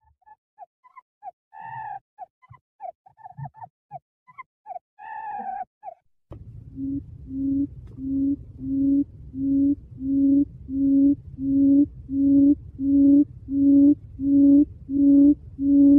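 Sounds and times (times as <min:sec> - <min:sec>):
quail hooting: 0:01.6 - 0:03.5, 0:04.3 - 0:06.0, 0:06.8 - 0:15.9.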